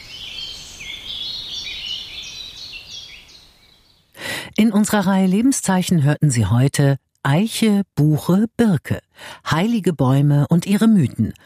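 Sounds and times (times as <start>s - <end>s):
birds singing in the treetops of an old oak in May: 0.0s - 4.2s
speech: 4.6s - 11.4s.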